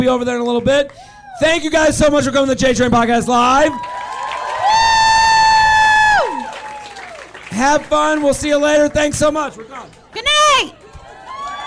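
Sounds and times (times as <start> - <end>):
speech: 0.0 - 4.0, 7.5 - 10.8
audience cheering and applauding: 3.6 - 11.6
loud sustained high-pitched whoop: 3.7 - 7.2, 11.2 - 11.6.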